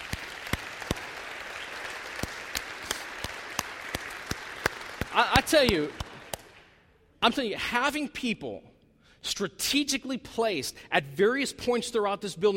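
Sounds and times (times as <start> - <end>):
church congregation applauding its welcome teams: 0.0 - 6.8
speech: 5.2 - 6.0, 7.2 - 12.5.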